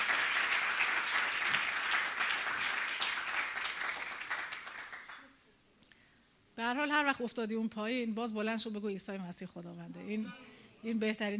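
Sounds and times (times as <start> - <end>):
audience applauding during a Christian sermon: 0.0 - 5.4
speech: 6.7 - 11.3.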